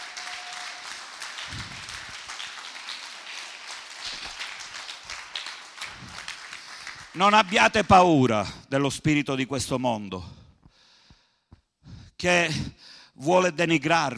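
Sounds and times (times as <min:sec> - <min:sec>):
audience applause: 0:00.0 - 0:08.2
speech: 0:07.2 - 0:10.4, 0:12.2 - 0:14.1.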